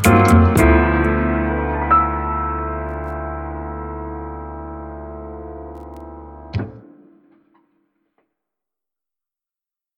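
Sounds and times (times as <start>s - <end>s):
broken piano: 0.0s - 7.6s.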